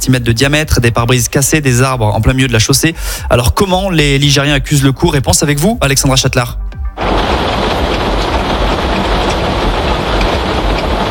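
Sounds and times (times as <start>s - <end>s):
speech: 0.1s - 7.1s
driving rain: 6.9s - 11.0s
howling tornado-strength wind: 7.0s - 11.0s.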